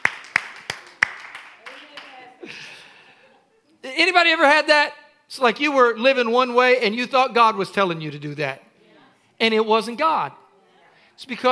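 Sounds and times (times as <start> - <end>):
hand clapping: 0.0 - 2.2
speech: 4.0 - 8.6, 9.4 - 10.4, 11.2 - 11.5.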